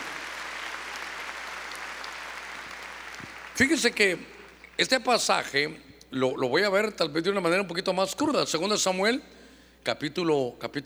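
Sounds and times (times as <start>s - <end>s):
audience clapping hands loudly: 0.0s - 5.0s
speech: 3.2s - 10.8s.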